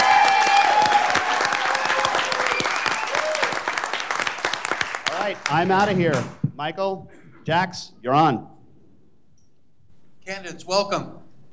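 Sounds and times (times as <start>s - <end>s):
Libertarian Party convention audience applauding: 0.0s - 6.2s
speech: 5.5s - 8.5s, 10.3s - 11.5s.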